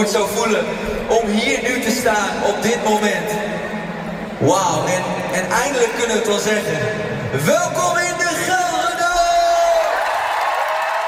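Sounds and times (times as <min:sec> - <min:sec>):
speech: 0:00.0 - 0:03.8, 0:04.4 - 0:08.7
concert crowd at the Gelredome cheering and whooping: 0:09.1 - 0:11.0.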